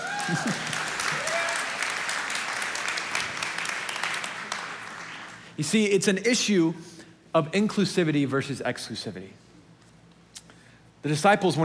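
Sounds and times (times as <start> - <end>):
audience clapping: 0.0 - 5.6
speech: 0.3 - 0.9, 5.6 - 9.4, 11.0 - 11.6.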